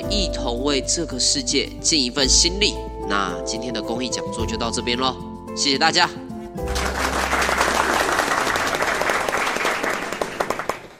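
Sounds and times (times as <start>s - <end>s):
speech: 0.1s - 6.2s
audience applause: 6.6s - 10.9s.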